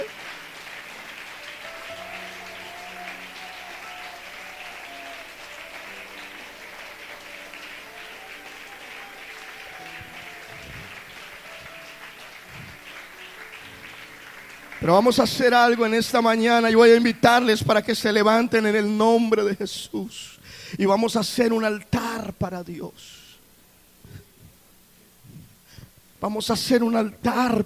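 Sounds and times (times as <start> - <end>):
crowd applause: 0.0 - 16.2
speech: 14.8 - 23.2, 26.2 - 27.6.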